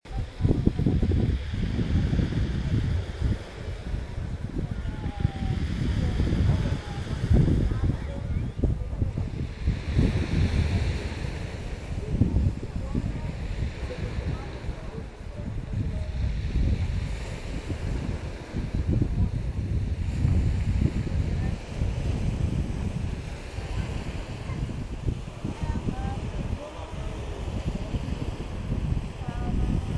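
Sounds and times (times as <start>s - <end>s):
waves at beach in Ibiza: 0.1s - 29.9s.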